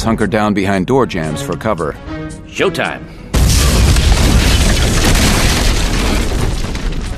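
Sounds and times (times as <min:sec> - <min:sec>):
speech: 0:00.0 - 0:03.2
C4 plastic explosive charges detonating: 0:03.3 - 0:07.1.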